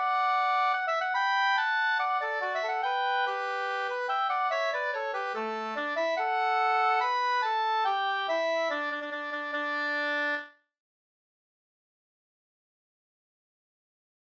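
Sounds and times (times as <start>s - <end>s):
skotsk dance tune: 0.0s - 10.4s.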